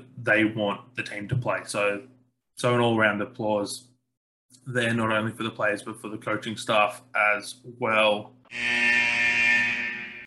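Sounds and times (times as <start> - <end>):
speech: 0.2 - 3.9, 4.6 - 9.0
end of period buzzer: 8.5 - 10.2.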